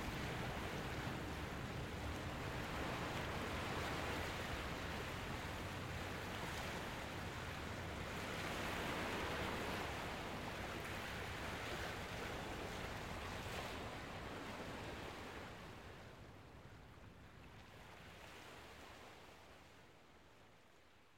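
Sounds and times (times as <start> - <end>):
harbour ambience: 0.0 - 15.9.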